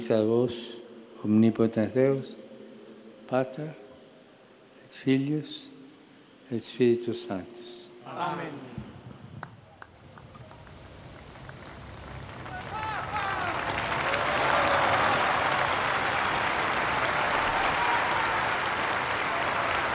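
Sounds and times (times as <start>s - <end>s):
speech: 0.1s - 2.4s, 3.3s - 3.8s, 4.9s - 5.7s, 6.5s - 8.8s
pilgrims' applause in St. Peter's Square: 9.9s - 19.9s.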